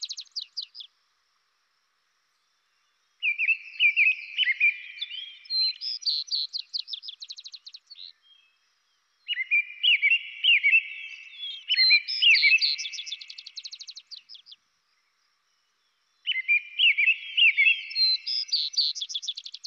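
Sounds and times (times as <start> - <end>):
robin singing: 0.0 - 0.9, 2.6 - 8.6, 9.2 - 14.6, 15.7 - 19.6.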